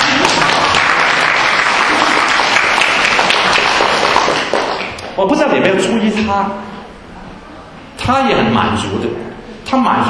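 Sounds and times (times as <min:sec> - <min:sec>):
audience applause: 0:00.0 - 0:05.0
speech: 0:05.2 - 0:06.7, 0:08.0 - 0:10.0.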